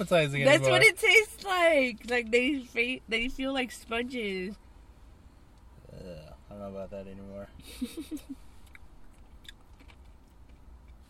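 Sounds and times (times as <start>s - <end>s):
speech: 0.0s - 4.6s, 6.0s - 8.5s
strawberries being chewed: 8.6s - 11.0s.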